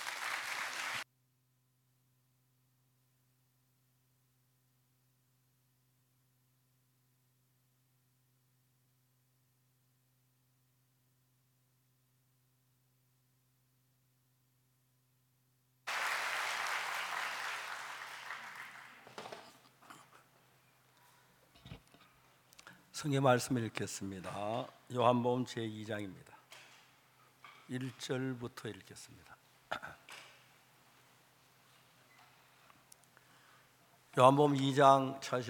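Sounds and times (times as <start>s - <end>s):
audience applause welcoming speaker: 0.0s - 1.0s, 15.9s - 19.5s
speech: 23.0s - 26.3s, 27.7s - 29.9s, 34.2s - 35.4s.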